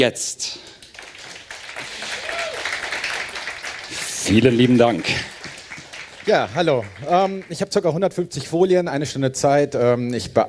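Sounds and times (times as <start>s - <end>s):
speech: 0.0s - 0.7s, 4.2s - 5.3s, 6.3s - 10.4s
audience applause: 0.8s - 8.0s.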